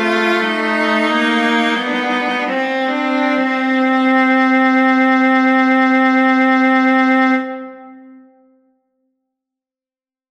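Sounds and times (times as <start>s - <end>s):
viola duet playing a canon: 0.0s - 8.2s.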